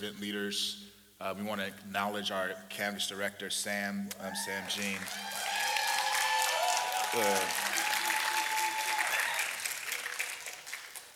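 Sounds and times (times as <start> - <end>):
speech: 0.0 - 5.5, 7.1 - 7.8
sustained audience applause: 4.2 - 11.1.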